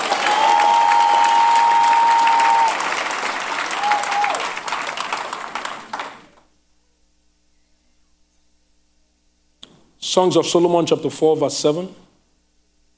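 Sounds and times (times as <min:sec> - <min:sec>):
audience clapping: 0:00.0 - 0:06.5
speech: 0:10.1 - 0:12.0.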